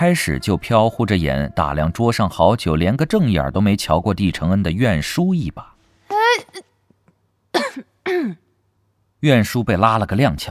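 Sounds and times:
speech: 0:00.0 - 0:05.7, 0:07.8 - 0:08.4, 0:09.2 - 0:10.4
person coughing: 0:07.6 - 0:08.5.

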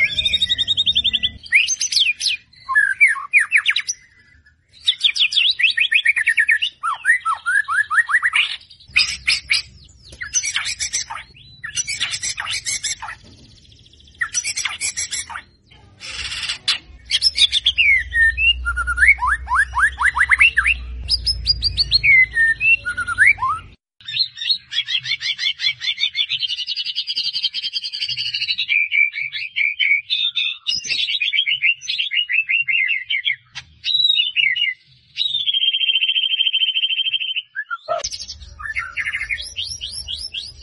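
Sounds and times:
white-rumped shama singing: 0:00.0 - 0:13.2, 0:14.1 - 0:40.6.

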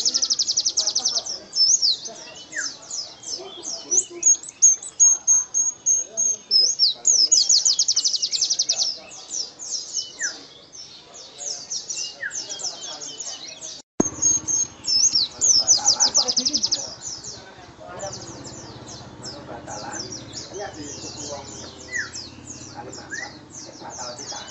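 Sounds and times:
white-eye singing energetically with high rapid trills and jumbled chirping: 0:00.0 - 0:24.4.

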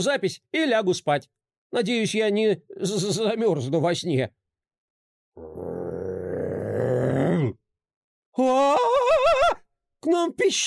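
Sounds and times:
speech: 0:00.0 - 0:04.4, 0:05.4 - 0:05.8, 0:08.4 - 0:10.6
loud human snoring: 0:05.4 - 0:07.6.

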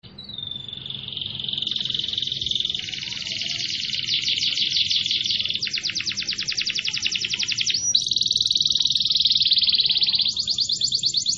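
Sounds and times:
canary buzzing trill and falling whistled notes: 0:00.0 - 0:11.3.

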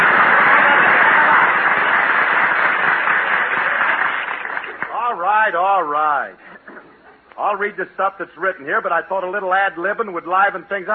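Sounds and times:
studio audience applauding: 0:00.0 - 0:05.4
speech: 0:07.5 - 0:10.9.

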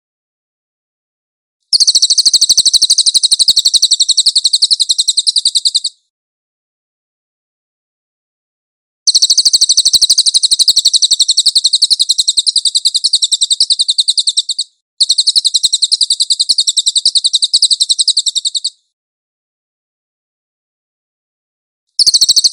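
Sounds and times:
song: 0:01.7 - 0:06.0, 0:09.1 - 0:18.8, 0:22.0 - 0:22.5.

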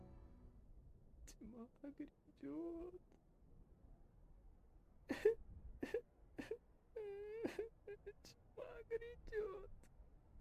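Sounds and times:
speech: 0:01.4 - 0:03.3, 0:07.5 - 0:09.8
delirious person wailing and sobbing: 0:05.1 - 0:09.7.

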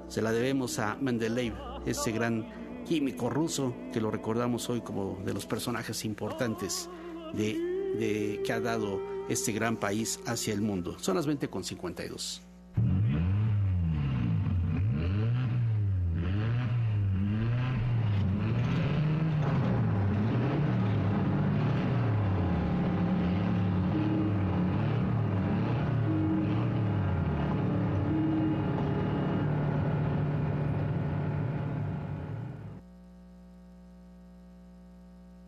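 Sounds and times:
speech: 0:00.1 - 0:12.9
motorcycle engines revving in a song: 0:12.7 - 0:32.7.

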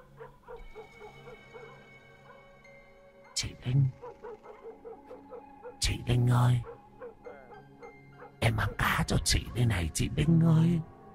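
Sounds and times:
dog barking: 0:00.0 - 0:02.4, 0:04.0 - 0:05.8, 0:06.6 - 0:09.9
speech: 0:03.4 - 0:04.0, 0:06.1 - 0:06.7, 0:08.5 - 0:10.9.

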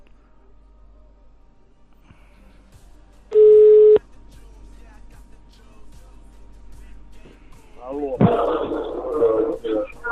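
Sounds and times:
faint hum: 0:00.0 - 0:10.0
ringback tone from an outgoing phone call: 0:03.3 - 0:04.0.

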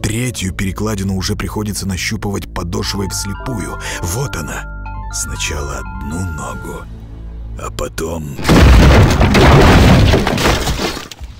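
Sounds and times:
speech: 0:00.1 - 0:07.0, 0:07.6 - 0:10.6
hollow dry crack of breaking wood: 0:08.4 - 0:11.3.

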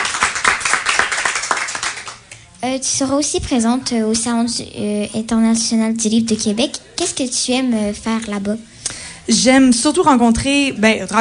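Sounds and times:
people clapping for a guest: 0:00.0 - 0:02.5
speech: 0:02.6 - 0:08.7, 0:09.3 - 0:11.1.

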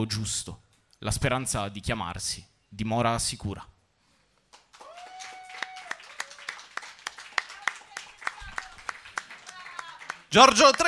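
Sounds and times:
speech: 0:00.0 - 0:03.7, 0:10.3 - 0:10.8
audience applause: 0:04.5 - 0:10.8.

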